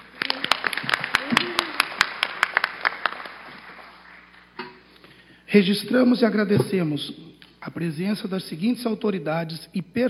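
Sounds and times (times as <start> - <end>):
round of applause: 0.0 - 4.4
speech: 5.5 - 10.0.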